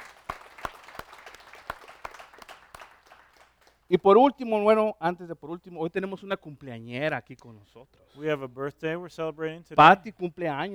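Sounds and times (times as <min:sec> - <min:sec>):
audience applause: 0:00.0 - 0:03.8
speech: 0:03.9 - 0:10.7.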